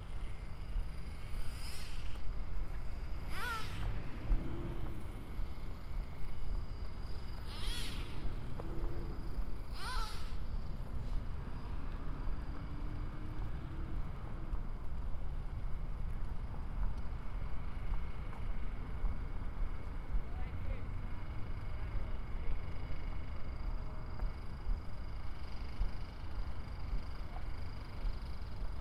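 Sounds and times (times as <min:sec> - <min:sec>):
steady low rumble of traffic on 111th in Corona: 0:00.0 - 0:28.7
short sharp hissing bursts: 0:01.2 - 0:02.3
faint whining tones from an electronic toy car: 0:03.2 - 0:04.2, 0:07.4 - 0:08.7, 0:09.7 - 0:10.6.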